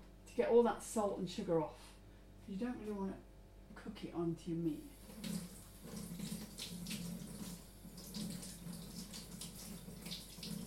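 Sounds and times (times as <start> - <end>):
speech: 0.4 - 6.0
tap water running into a kitchen sink: 5.0 - 10.6.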